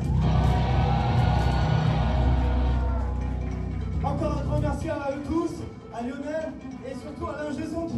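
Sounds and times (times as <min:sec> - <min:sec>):
concert crowd shouts and whoops: 0:00.0 - 0:03.4
concert crowd cheering at the MJC venue of Trépied-en-Valois: 0:00.0 - 0:04.0
speech: 0:04.8 - 0:07.9.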